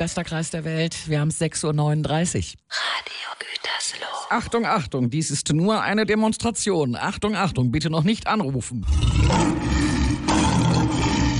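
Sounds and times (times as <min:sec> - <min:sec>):
speech: 0:00.0 - 0:09.5
lion roaring at a safari park: 0:08.8 - 0:11.3.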